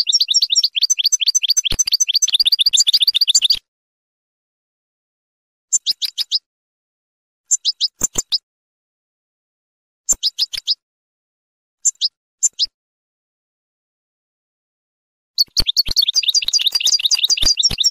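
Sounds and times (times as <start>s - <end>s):
finch singing: 0.0s - 3.6s, 5.7s - 6.5s, 7.5s - 8.4s, 10.1s - 10.8s, 11.8s - 12.8s, 15.4s - 17.9s.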